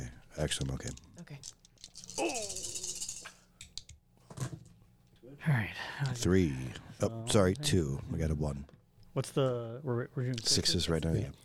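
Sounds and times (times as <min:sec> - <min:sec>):
faint noise: 0:00.0 - 0:11.4
speech: 0:00.4 - 0:01.6, 0:05.4 - 0:11.4
handful of dice rattling and clattering: 0:00.6 - 0:03.9.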